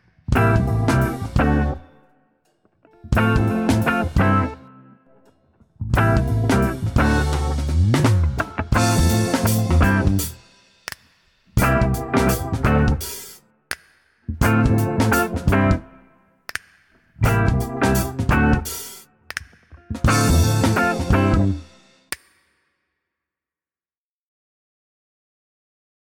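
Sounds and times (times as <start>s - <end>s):
instrumental lieder: 0.3s - 2.2s, 3.0s - 13.8s, 14.4s - 22.2s.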